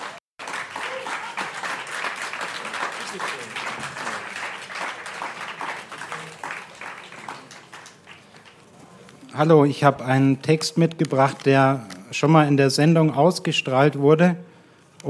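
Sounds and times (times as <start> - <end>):
audience applause: 0.0 - 9.0
speech: 9.4 - 15.0.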